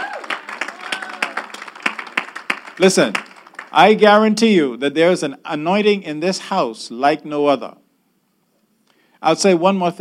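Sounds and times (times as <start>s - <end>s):
audience clapping hands in praise: 0.0s - 4.0s
speech: 2.8s - 7.8s, 9.2s - 9.9s.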